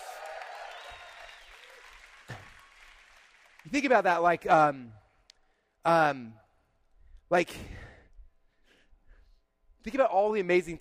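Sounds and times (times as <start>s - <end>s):
audience applause: 0.0s - 4.0s
sharp clap: 0.0s - 4.0s
speech: 3.6s - 5.0s, 5.8s - 6.4s, 7.3s - 7.8s, 9.8s - 10.7s.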